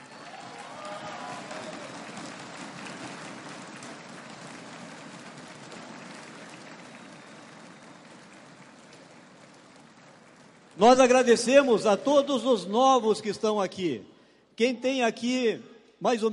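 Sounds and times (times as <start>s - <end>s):
audience applause: 0.0s - 11.7s
speech: 10.8s - 16.3s.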